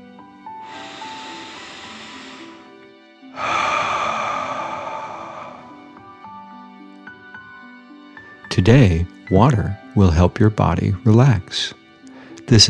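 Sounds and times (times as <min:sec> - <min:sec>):
soft sustained music tones: 0:00.0 - 0:12.6
deep breathing: 0:00.5 - 0:06.4
speech: 0:08.6 - 0:11.8, 0:12.5 - 0:12.6.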